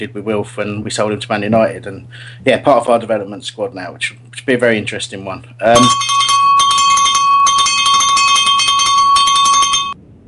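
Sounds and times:
speech: 0.0 - 6.1
cowbell ringing: 5.7 - 10.0.

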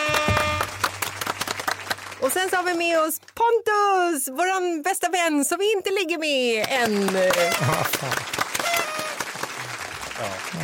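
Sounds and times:
applause: 0.0 - 3.4, 6.6 - 10.6
speech: 2.4 - 8.4, 10.2 - 10.6.

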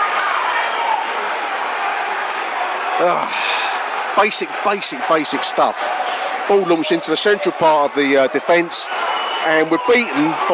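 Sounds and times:
stadium crowd reacting to equalising goal: 0.0 - 10.5
speech: 3.0 - 3.6, 4.2 - 10.5.

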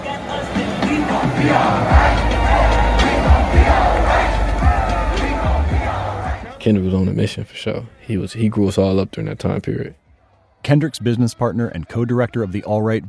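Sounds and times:
protest crowd chanting song in Black Lives Matter Plaza: 0.0 - 6.6
speech: 1.4 - 2.0, 6.6 - 10.0, 10.6 - 13.0.

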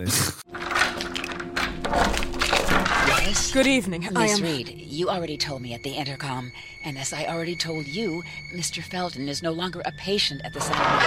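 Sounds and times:
speech: 0.0 - 0.4, 3.3 - 11.0
video game door opening and shutting: 0.5 - 3.7, 10.6 - 11.0.

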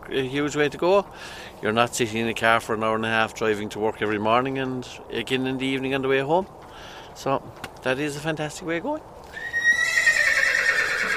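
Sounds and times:
speech: 0.1 - 9.1
horse neighing: 9.3 - 11.1.

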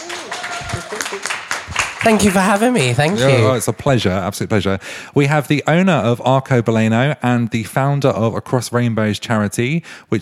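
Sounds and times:
audience applause: 0.0 - 4.0
speech: 0.7 - 10.2.

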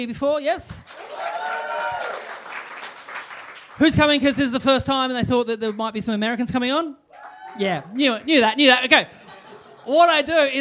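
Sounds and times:
speech: 0.0 - 1.3, 3.8 - 7.0, 7.6 - 9.2, 9.8 - 10.6
audience round of applause: 0.9 - 4.1, 7.2 - 8.0
laughter: 9.0 - 10.5.

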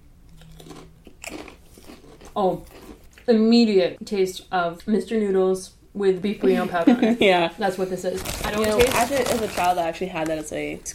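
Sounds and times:
potato chips being crunched: 0.3 - 3.3, 8.2 - 10.6
speech: 2.4 - 10.9.

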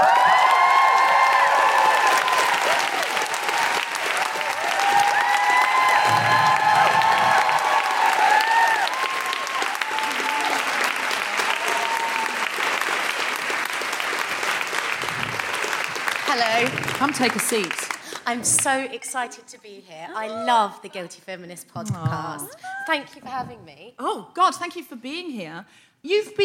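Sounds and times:
audience cheering and clapping: 0.0 - 18.7
speech: 17.0 - 26.4.

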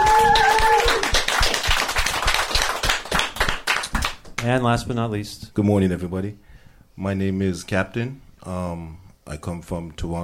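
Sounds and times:
audience applause: 0.0 - 4.2
speech: 4.4 - 10.2.

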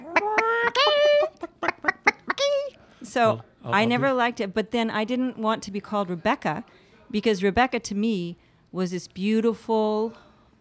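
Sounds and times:
woman imitating a chicken clucking: 0.0 - 2.8
speech: 3.2 - 10.6.

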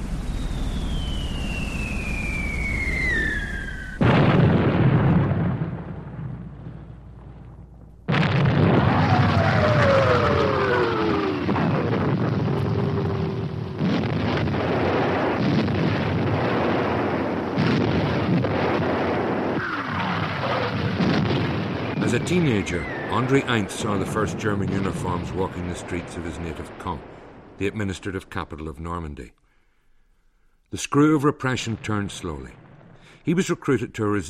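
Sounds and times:
descending whistles of artillery bombardment: 0.0 - 4.0, 21.9 - 23.4
wartime artillery bombardment of the coast on the morning of the Normandy invasion: 0.0 - 28.5, 31.6 - 33.4
speech: 22.2 - 29.4, 30.7 - 32.6, 33.2 - 34.2.

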